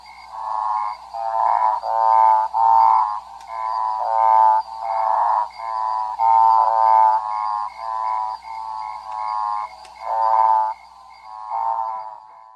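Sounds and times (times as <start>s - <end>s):
common lesser escuerzo croaking: 0.0s - 12.5s
faint steady high tone: 0.0s - 12.5s.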